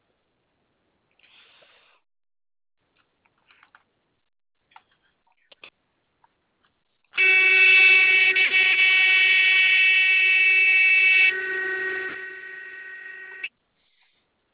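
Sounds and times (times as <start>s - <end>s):
truck low air-pressure warning alarm buzzing: 7.2s - 13.5s.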